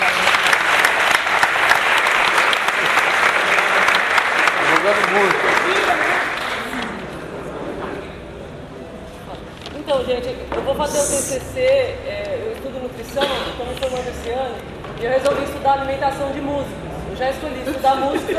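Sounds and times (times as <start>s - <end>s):
audience applause: 0.0s - 7.1s
speech: 4.9s - 6.3s, 10.1s - 18.3s.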